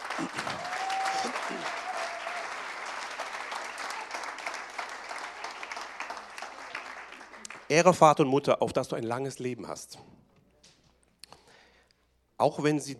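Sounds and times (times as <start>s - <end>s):
audience applause: 0.0s - 7.7s
speech: 0.2s - 1.8s, 7.7s - 10.1s, 12.4s - 12.9s.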